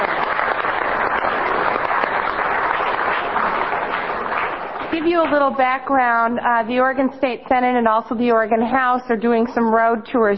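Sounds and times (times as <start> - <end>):
audience applause: 0.0 - 5.4
speech: 4.9 - 10.3.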